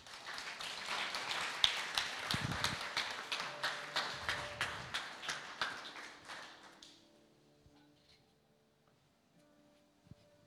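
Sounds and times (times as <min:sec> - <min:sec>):
audience applause: 0:00.0 - 0:07.0.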